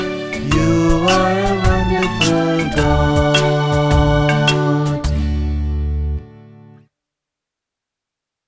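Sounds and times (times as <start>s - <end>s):
African song: 0.0s - 6.7s.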